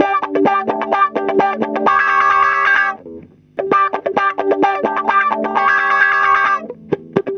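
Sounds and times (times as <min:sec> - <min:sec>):
hot guitar in roots disco: 0:00.0 - 0:07.3.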